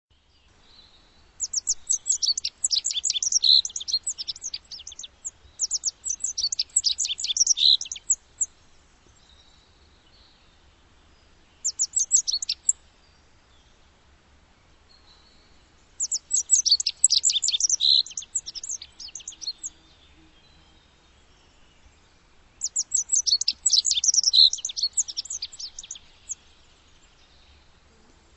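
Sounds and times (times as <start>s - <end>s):
bird twittering: 1.4s - 8.5s, 11.6s - 12.8s, 16.0s - 19.9s, 22.6s - 26.4s.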